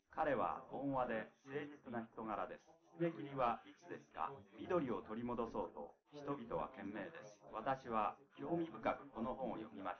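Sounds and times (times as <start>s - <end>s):
male voice: 0.1s - 9.9s.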